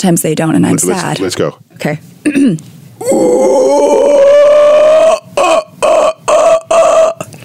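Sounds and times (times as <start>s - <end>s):
speech: 0.0s - 4.3s
person imitating a howler monkey call: 3.0s - 7.3s.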